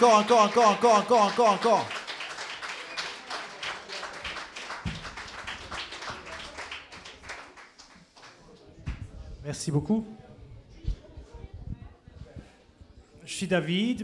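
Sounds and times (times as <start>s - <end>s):
speech: 0.0s - 2.0s, 9.5s - 10.2s, 13.4s - 14.0s
audience applause: 0.0s - 8.4s.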